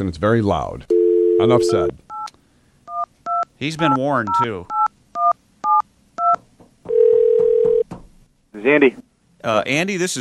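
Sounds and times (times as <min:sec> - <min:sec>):
speech: 0:00.0 - 0:02.0, 0:03.6 - 0:04.8, 0:08.6 - 0:10.1
steady lower continuous tone from the phone line: 0:00.9 - 0:01.9, 0:06.9 - 0:07.8
telephone dialing beeps: 0:04.7 - 0:07.8.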